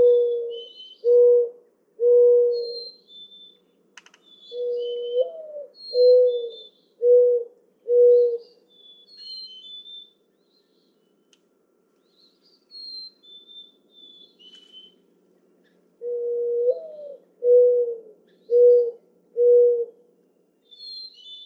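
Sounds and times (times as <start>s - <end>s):
mourning dove cooing: 0.0s - 2.9s, 4.5s - 8.6s, 16.0s - 20.0s.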